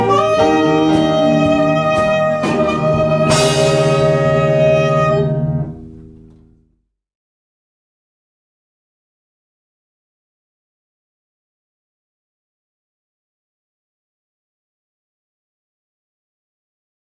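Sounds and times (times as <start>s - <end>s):
saxophone: 0.0s - 6.6s.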